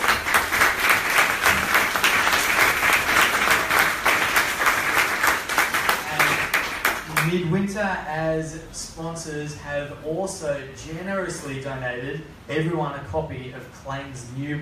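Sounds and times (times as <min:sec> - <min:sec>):
audience applause for panelists: 0:00.0 - 0:07.3
speech: 0:07.8 - 0:14.6.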